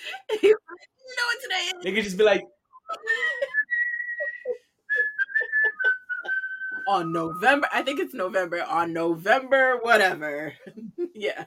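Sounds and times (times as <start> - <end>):
speech: 0.2 - 3.2, 6.9 - 11.4
person whistling a TV sitcom theme tune: 3.5 - 7.6
laughter: 4.2 - 6.8.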